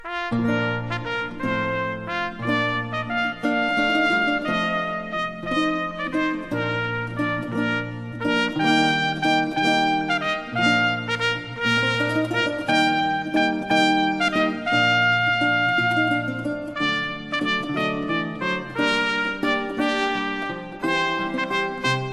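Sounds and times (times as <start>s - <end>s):
fanfare: 0.0s - 22.1s.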